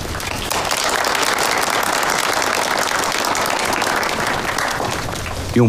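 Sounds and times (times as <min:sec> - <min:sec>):
audience applause: 0:00.0 - 0:05.5.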